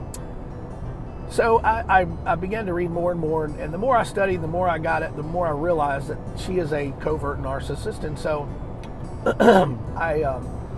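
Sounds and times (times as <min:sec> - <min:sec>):
speech: 0:01.3 - 0:08.6, 0:09.2 - 0:10.6
throat clearing from phlegm: 0:09.3 - 0:09.8.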